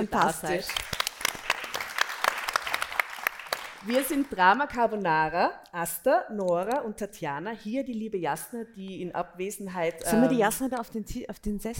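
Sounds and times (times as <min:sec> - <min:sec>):
speech: 0:00.0 - 0:00.9, 0:03.8 - 0:11.7
audience applause: 0:00.0 - 0:04.4.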